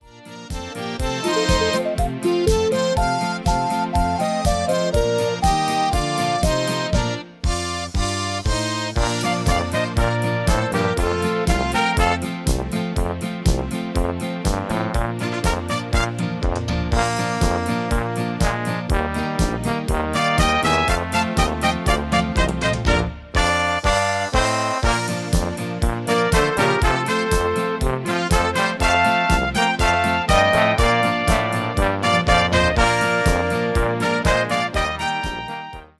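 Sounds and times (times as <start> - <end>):
MIDI music: 0.0 - 35.9.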